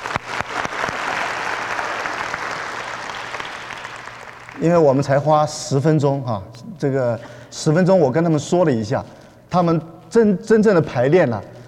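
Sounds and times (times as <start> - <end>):
audience applause: 0.0 - 4.6
speech: 4.6 - 11.5.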